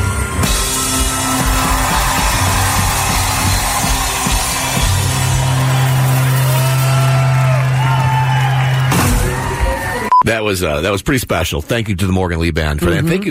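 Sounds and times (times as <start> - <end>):
audience clapping and cheering: 0.1 - 10.1
speech: 10.5 - 13.2.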